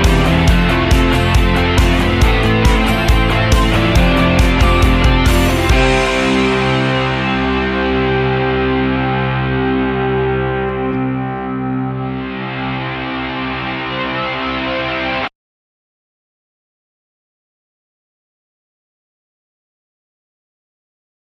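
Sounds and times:
modern pop rock music: 0.0s - 15.3s.

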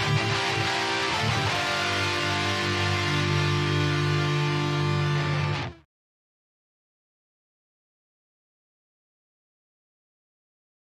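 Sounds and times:
guitar: 0.0s - 5.9s.

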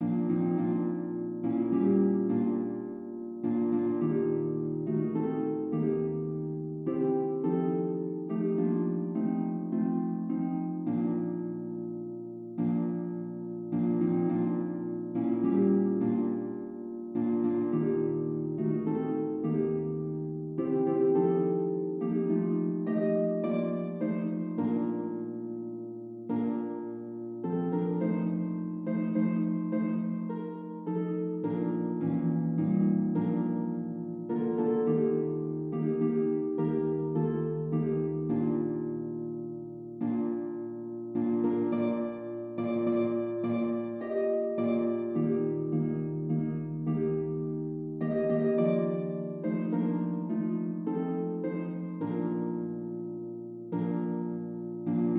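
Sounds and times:
harp melody: 0.0s - 55.1s.

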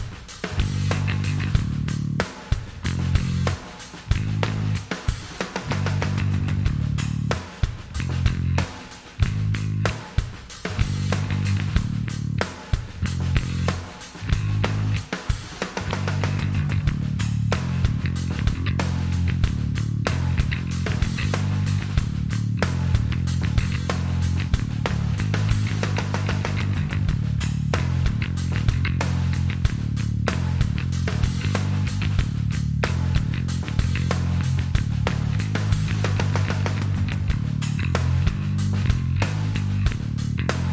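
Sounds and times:
bass: 0.0s - 40.7s
drums: 0.0s - 40.7s.

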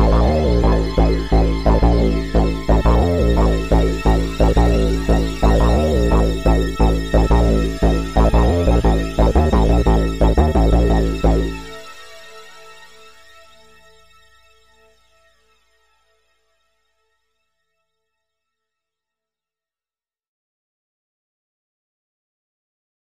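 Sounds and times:
chasing bass synth: 0.0s - 12.0s.

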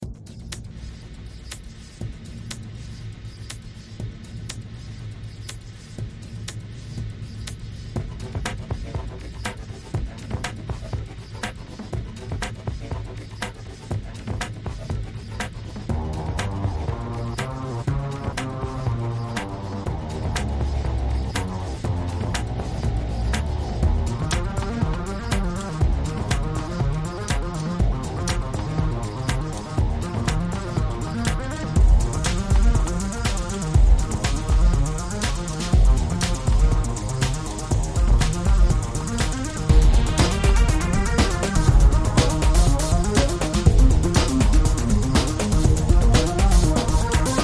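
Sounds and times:
electric music: 0.0s - 47.4s.

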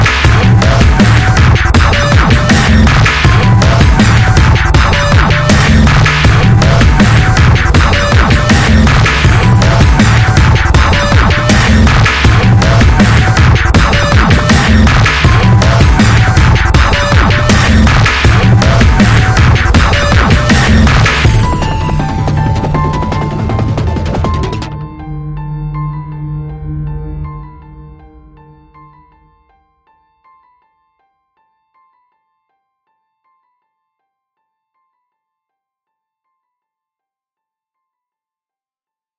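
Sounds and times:
terror dubstep glitch music: 0.0s - 27.4s.

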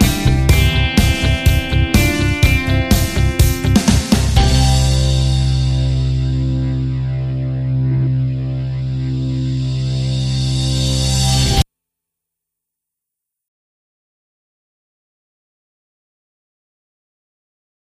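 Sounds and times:
business pop rock music: 0.0s - 11.6s.

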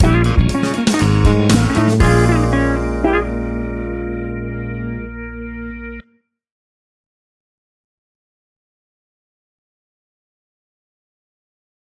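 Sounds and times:
funk band rhythm stinger: 0.0s - 5.9s.

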